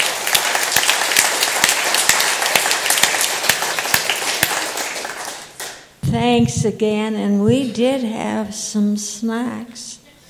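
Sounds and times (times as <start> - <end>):
applause: 0.0 - 6.0
speech: 6.1 - 10.0.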